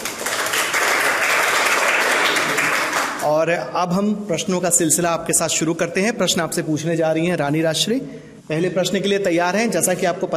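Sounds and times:
audience applause: 0.0 - 3.2
speech: 3.4 - 10.3.

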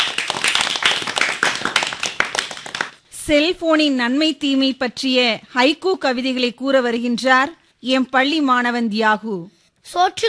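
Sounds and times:
audience clapping for students at a school event: 0.0 - 3.0
speech: 3.3 - 10.2.

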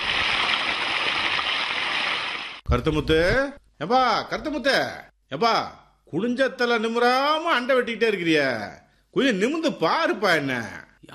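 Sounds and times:
water flowing in a field channel: 0.0 - 2.6
speech: 2.7 - 11.1.

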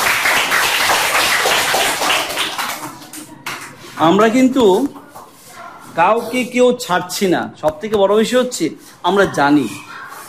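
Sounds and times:
class of students clapping for a classmate's correct answer: 0.0 - 3.8
speech: 4.0 - 5.0, 6.0 - 9.9.

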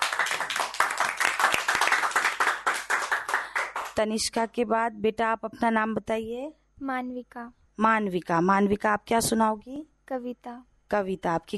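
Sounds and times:
audience applause for a child's poem: 0.0 - 4.0
speech: 4.0 - 11.5.

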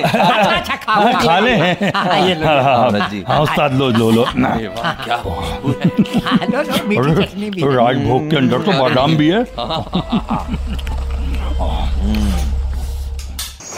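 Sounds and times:
laughter: 0.0 - 12.4
speech: 0.0 - 12.6
car arriving: 9.3 - 13.6.

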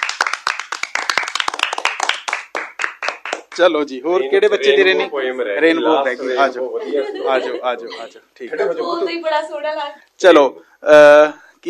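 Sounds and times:
loud audience clapping at a children's recitation event: 0.0 - 3.7
speech: 3.6 - 11.6
laughter: 6.1 - 9.2.

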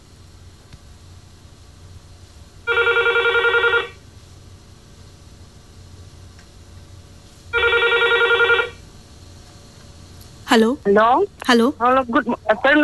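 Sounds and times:
telephone ringing with an incoming call: 2.7 - 4.0, 7.6 - 8.8
speech: 10.6 - 12.8.

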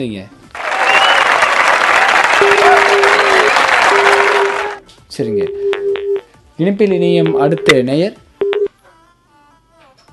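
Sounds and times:
speech: 0.0 - 0.4, 5.2 - 5.7, 6.6 - 8.2
audience clapping: 0.5 - 4.8.

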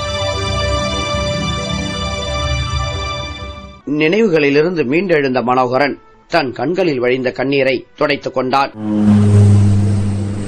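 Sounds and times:
airplane landing in Chennai engine drone: 0.0 - 3.8, 8.7 - 10.4
speech: 3.9 - 9.4.

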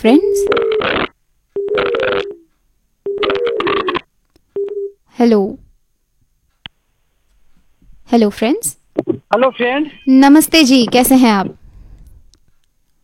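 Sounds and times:
speech: 0.0 - 0.3, 8.1 - 11.6
telephone line ringing to connect a radio caller: 1.6 - 2.4, 3.1 - 4.0, 4.6 - 5.0.

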